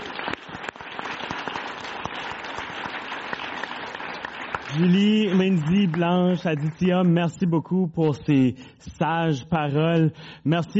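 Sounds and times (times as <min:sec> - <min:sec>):
audience applause: 0:00.0 - 0:07.1
speech: 0:04.7 - 0:10.7.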